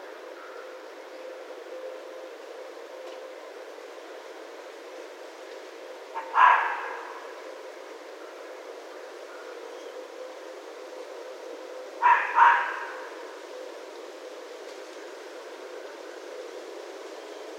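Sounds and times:
red fox double bark: 6.1s - 7.4s, 12.0s - 13.3s.

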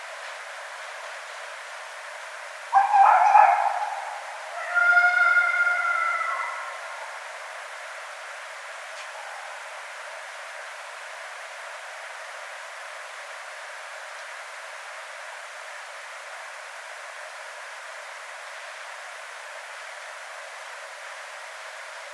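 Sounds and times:
red fox calling: 2.7s - 7.3s, 9.0s - 9.7s.

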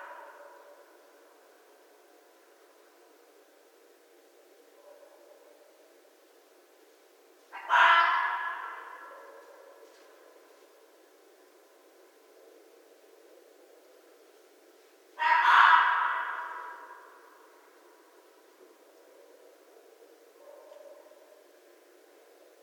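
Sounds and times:
North American red fox: 0.0s - 1.3s, 7.5s - 10.8s, 15.2s - 21.6s.

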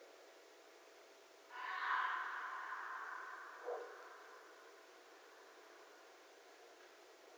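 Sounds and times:
red fox moaning call: 1.5s - 4.5s.

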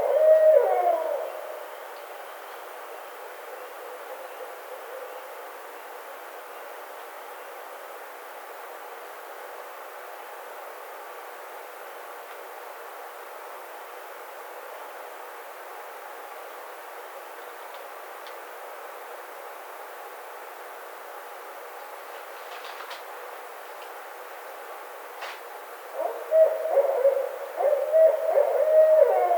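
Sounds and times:
barred owl hooting: 0.0s - 1.7s, 25.9s - 29.3s.

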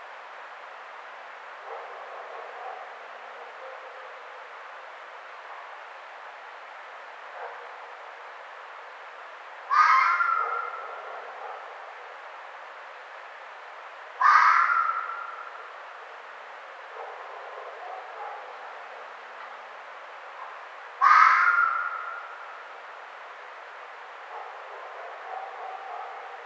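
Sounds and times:
red fox calling: 9.7s - 11.6s, 14.2s - 15.7s, 21.0s - 22.6s.

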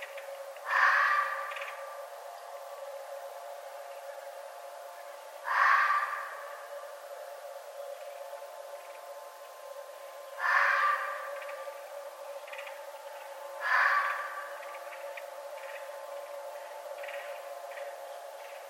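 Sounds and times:
red fox calling: 0.6s - 1.8s, 5.4s - 6.7s, 10.4s - 11.8s, 13.6s - 15.9s.

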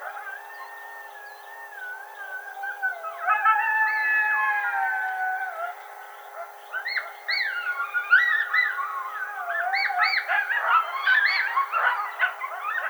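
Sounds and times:
coyote Canis latrans howling: 0.0s - 5.8s, 6.4s - 12.8s.

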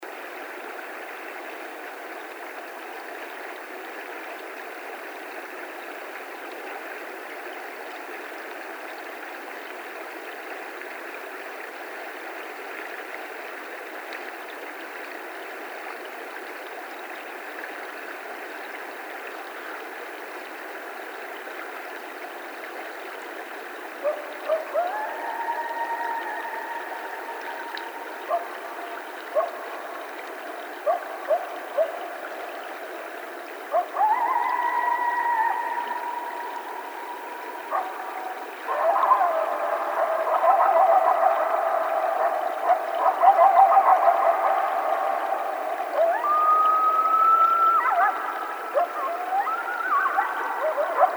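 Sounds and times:
coyotes howling: 24.0s - 51.1s.

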